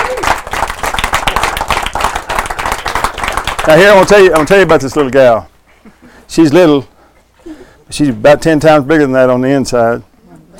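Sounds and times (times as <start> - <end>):
crowd applause: 0.0 - 5.1
speech: 3.7 - 5.5, 6.3 - 6.9, 7.9 - 10.5.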